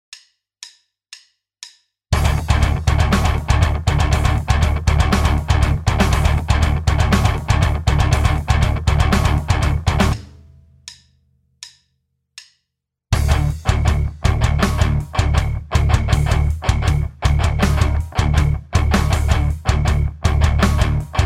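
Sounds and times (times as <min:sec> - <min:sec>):
rhythm: 0:02.2 - 0:11.1, 0:13.2 - 0:21.2.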